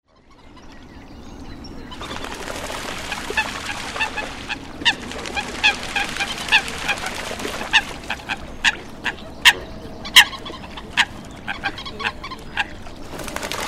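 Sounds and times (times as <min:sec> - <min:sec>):
coot giving loud clipped nasal notes: 0:03.2 - 0:13.0.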